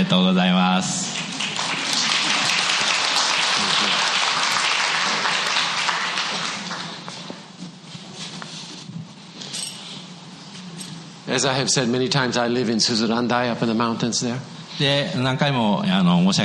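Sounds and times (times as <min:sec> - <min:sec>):
speech: 0:00.0 - 0:01.3, 0:11.3 - 0:16.4
audience applauding to welcome a guest speaker: 0:01.0 - 0:07.5.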